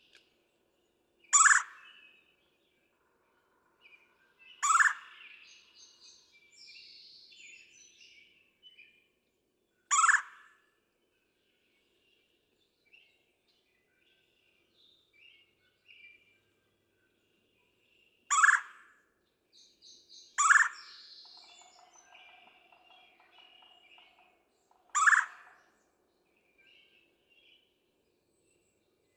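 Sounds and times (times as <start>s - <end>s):
Red-bellied Woodpecker: 1.3s - 8.0s, 9.9s - 10.6s, 18.3s - 19.0s, 19.6s - 27.8s.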